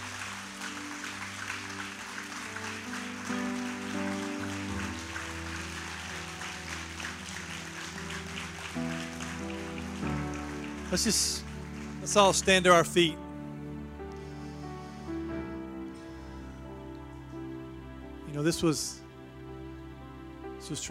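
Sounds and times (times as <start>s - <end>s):
audience applause: 0.0s - 13.0s
speech: 10.9s - 11.5s, 12.1s - 13.2s, 18.4s - 19.0s, 20.7s - 20.8s.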